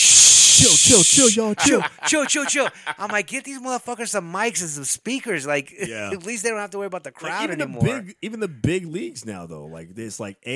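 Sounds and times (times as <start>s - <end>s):
person shushing: 0.0s - 1.8s
speech: 0.6s - 10.5s
laughter: 1.3s - 3.5s.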